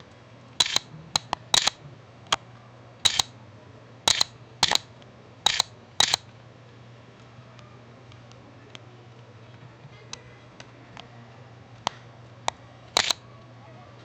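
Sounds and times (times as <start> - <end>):
paparazzi camera: 0.6 - 1.8, 3.1 - 3.3, 4.1 - 4.9, 5.5 - 6.3, 13.0 - 13.2.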